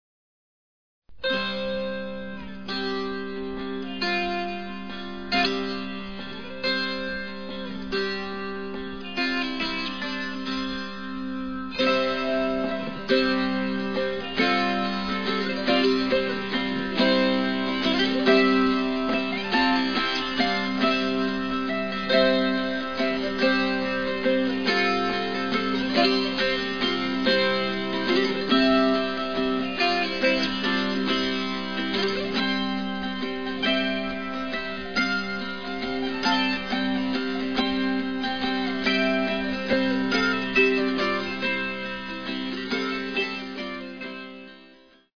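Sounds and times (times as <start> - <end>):
dulcimer duet: 1.2 - 44.8.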